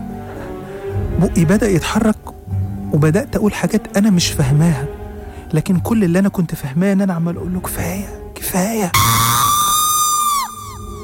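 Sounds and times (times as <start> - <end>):
speech: 1.1 - 2.3, 2.9 - 4.9, 5.5 - 9.5
woman screaming: 9.0 - 11.0.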